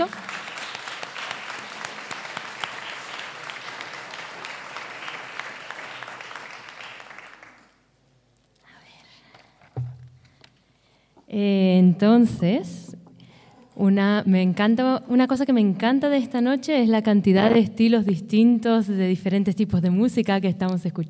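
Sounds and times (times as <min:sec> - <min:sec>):
audience applause at a charity concert inside a village church: 0:00.0 - 0:07.8
speech: 0:11.4 - 0:12.9, 0:13.8 - 0:21.0.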